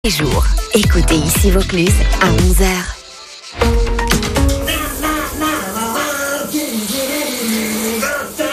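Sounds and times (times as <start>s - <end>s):
speech: 0.0s - 3.8s
shower water running: 2.1s - 8.5s
person singing: 4.4s - 8.5s.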